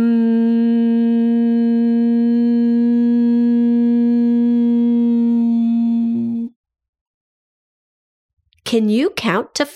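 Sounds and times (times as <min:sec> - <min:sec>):
person humming one steady note: 0:00.0 - 0:06.5
speech: 0:08.7 - 0:09.7.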